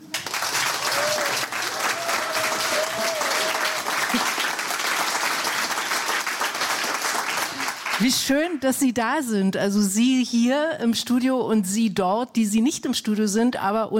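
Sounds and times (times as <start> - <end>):
studio audience applause: 0.0 - 8.1
speech: 8.0 - 13.9.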